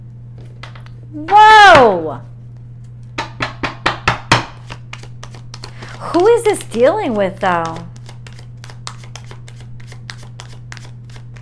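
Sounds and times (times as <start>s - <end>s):
low constant hum: 0.0s - 11.4s
speech: 1.1s - 2.3s, 6.0s - 7.9s
tarot cards being shuffled and handled: 4.6s - 11.4s.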